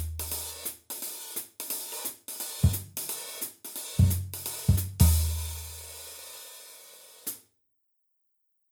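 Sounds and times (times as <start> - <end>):
swing music: 0.0 - 0.7, 2.5 - 6.0.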